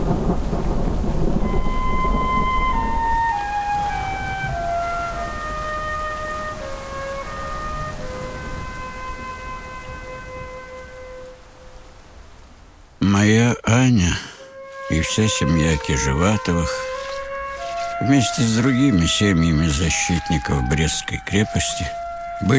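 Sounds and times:
deep thunder rumble: 0.0 - 13.0, 14.4 - 22.5
steady rain: 0.0 - 22.5
speech: 0.1 - 0.7, 15.2 - 16.9, 18.0 - 22.5.

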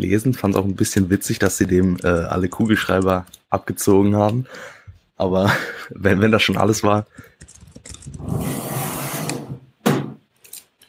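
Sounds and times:
speech: 0.0 - 7.4
typing on a keyboard: 0.4 - 3.5, 6.5 - 8.2.

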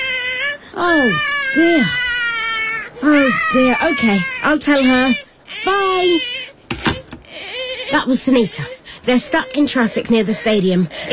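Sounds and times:
baby screaming: 0.0 - 8.4
speech: 0.8 - 2.0, 3.0 - 6.3, 7.9 - 11.1.

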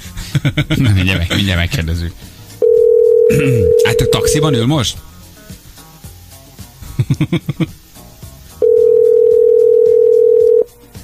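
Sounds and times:
speech: 0.4 - 2.3, 3.3 - 5.1, 7.1 - 7.8
telephone ringback tone of an unusual foreign style: 2.6 - 4.6, 8.6 - 10.7.

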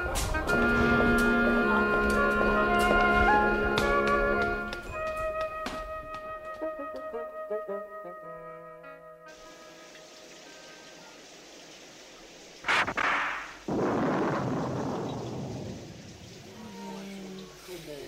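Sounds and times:
steady rain falling outside a castle: 0.0 - 4.8, 9.3 - 18.0
thunder crack and rumble: 12.6 - 16.6.

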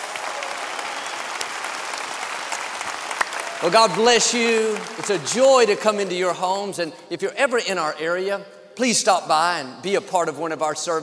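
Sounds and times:
Lakewood church congregation applauding: 0.0 - 6.8
speech: 3.6 - 11.0.

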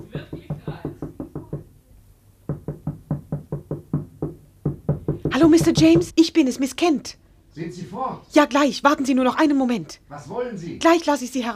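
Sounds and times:
repeated knocking: 0.0 - 1.7, 2.4 - 6.3
speech: 5.3 - 11.5.

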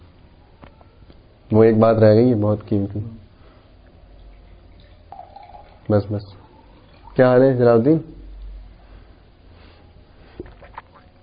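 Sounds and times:
speech: 1.5 - 3.2, 5.9 - 6.4, 7.2 - 8.2
water pouring into a glass: 4.2 - 7.4.

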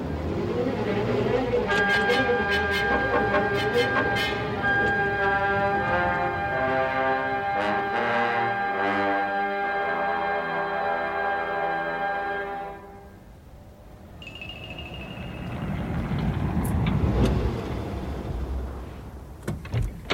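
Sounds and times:
car engine humming while driven quickly to Wimpole Street: 0.0 - 8.9, 12.8 - 19.6
road rumble: 0.0 - 20.1.

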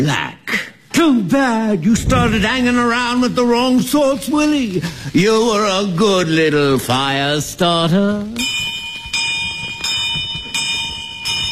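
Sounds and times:
speech: 0.0 - 0.4, 1.0 - 8.6
alarm bell ringing: 8.4 - 11.5.

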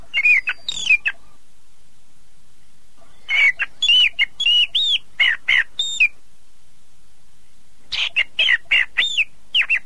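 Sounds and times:
bird song with whistles, chattering trills and chirps: 0.0 - 1.5, 3.0 - 6.2, 7.9 - 9.8.

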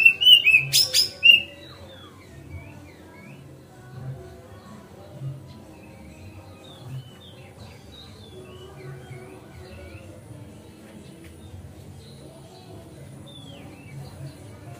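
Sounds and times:
Oriental magpie-robin song with whistles and buzzy notes: 0.0 - 3.5.

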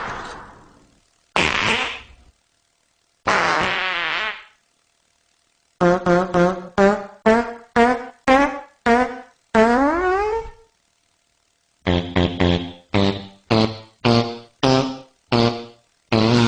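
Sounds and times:
cartoon fart sounds from a farting contest: 1.3 - 2.3, 3.2 - 4.6, 5.8 - 10.7, 11.8 - 16.4.

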